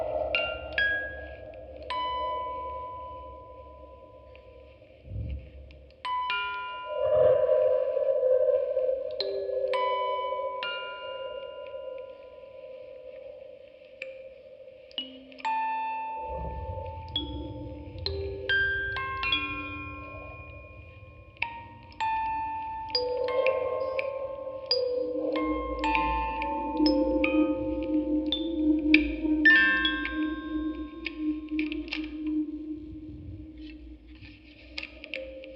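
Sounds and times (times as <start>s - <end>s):
field recording ambience: 0.0s - 35.5s
quartet of music boxes playing: 0.0s - 35.5s.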